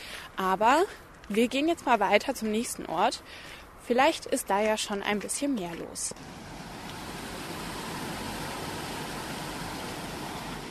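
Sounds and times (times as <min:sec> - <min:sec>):
speech: 0:00.4 - 0:06.5
flowing water near an old mill: 0:06.2 - 0:10.6.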